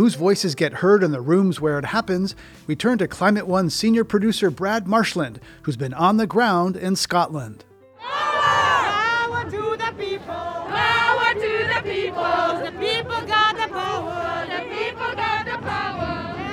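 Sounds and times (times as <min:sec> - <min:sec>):
speech: 0:00.0 - 0:08.3
crowd of protesters marching: 0:08.0 - 0:16.5.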